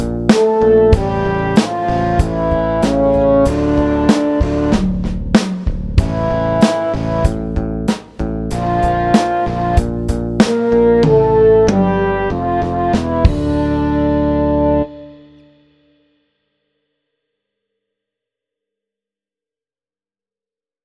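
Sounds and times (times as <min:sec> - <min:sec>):
slow electric rock music: 0:00.0 - 0:15.6.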